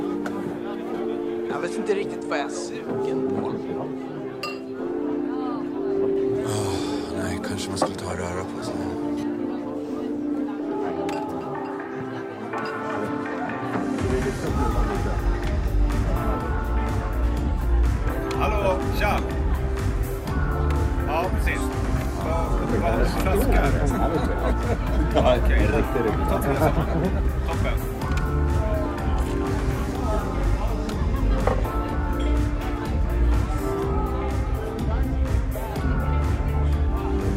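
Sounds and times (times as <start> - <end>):
background music: 0.0 - 37.3
bar chatter: 0.0 - 37.3
glass clinks: 4.4 - 4.7
laughter: 22.7 - 27.8.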